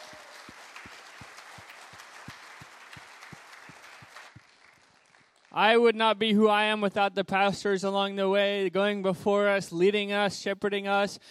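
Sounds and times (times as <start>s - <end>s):
audience round of applause: 0.0s - 5.6s
speech: 5.6s - 11.3s.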